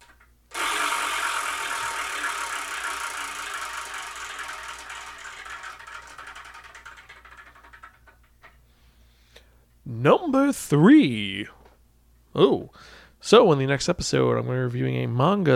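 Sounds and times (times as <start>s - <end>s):
spinning wheel clicking while picking a number: 0.0s - 8.6s
speech: 9.9s - 11.6s, 12.4s - 15.5s.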